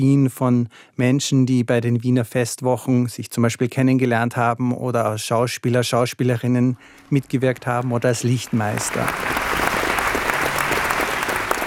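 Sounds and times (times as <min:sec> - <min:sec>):
speech: 0:00.0 - 0:09.6
applause from a premiere audience at a theatre play: 0:06.9 - 0:11.6.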